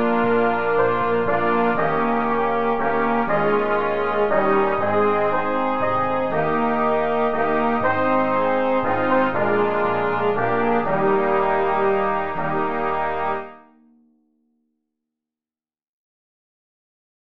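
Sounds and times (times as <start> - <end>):
brass instruments: 0.0 - 13.7.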